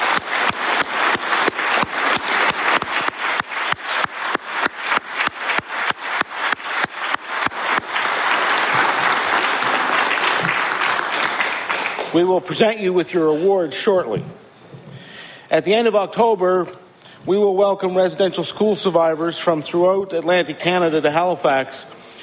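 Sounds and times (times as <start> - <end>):
audience applause: 0.0 - 12.3
speech: 12.2 - 14.4, 15.6 - 22.0.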